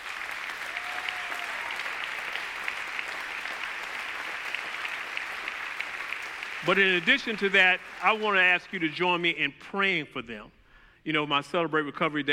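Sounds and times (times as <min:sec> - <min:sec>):
audience applause: 0:00.0 - 0:09.2
speech: 0:06.6 - 0:12.3.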